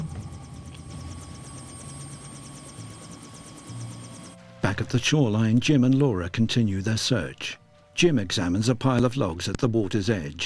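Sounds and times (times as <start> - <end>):
helicopter rotor chopping on a riverbank: 0.0 - 4.4
helicopter engine drone: 0.0 - 5.4
speech: 4.7 - 10.4.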